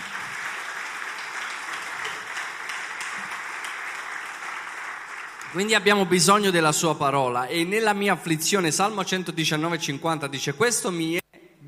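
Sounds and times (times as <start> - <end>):
audience applause: 0.0 - 5.8
speech: 5.5 - 11.2.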